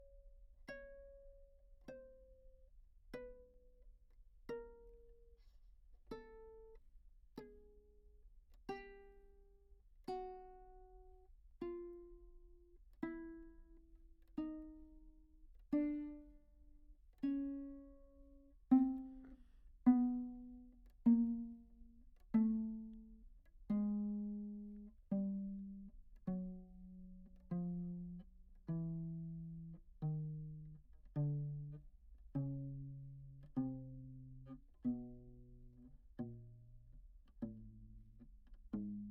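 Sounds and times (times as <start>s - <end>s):
tenor viol pizzicato descending chromatically: 0.0s - 6.8s, 7.4s - 7.9s, 8.5s - 39.0s.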